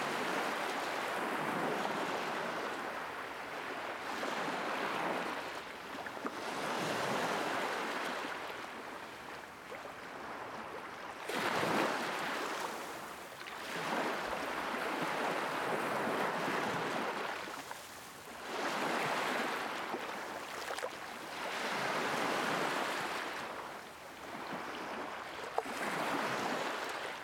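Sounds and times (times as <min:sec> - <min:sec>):
waves lapping on beach: 0:00.0 - 0:27.2.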